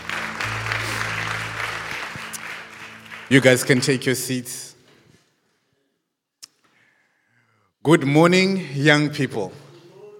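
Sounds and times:
audience applause for the band: 0.0 - 4.3
speech: 3.3 - 4.7, 7.8 - 9.6.

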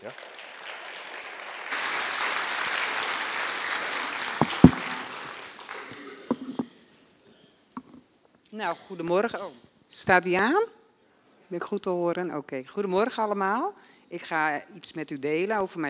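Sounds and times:
encouraging applause from audience: 0.0 - 6.6
speech: 8.6 - 10.8, 11.5 - 15.8.

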